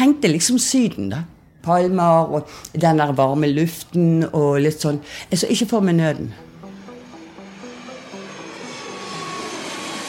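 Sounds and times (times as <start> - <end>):
speech: 0.0 - 6.5
jet airplane landing: 6.4 - 10.0.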